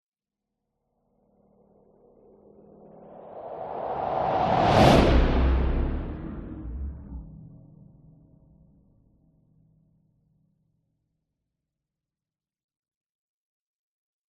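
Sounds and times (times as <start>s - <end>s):
slow heavy horror whoosh: 2.2s - 7.8s.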